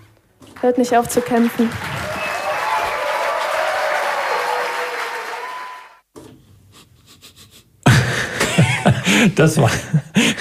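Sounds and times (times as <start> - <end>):
small round of applause: 0.5 - 6.0
speech: 0.6 - 2.1, 9.2 - 10.3
laughter: 7.2 - 10.3.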